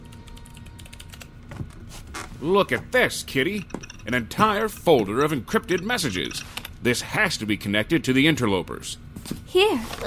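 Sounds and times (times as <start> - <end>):
rapid typing on a computer keyboard: 0.0 - 1.3
low hum: 0.0 - 10.0
speech: 2.4 - 10.0.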